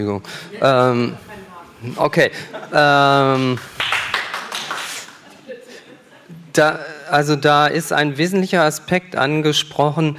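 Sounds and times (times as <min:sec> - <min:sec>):
speech: 0:00.0 - 0:03.7, 0:06.6 - 0:10.1
audience applause: 0:03.4 - 0:05.2.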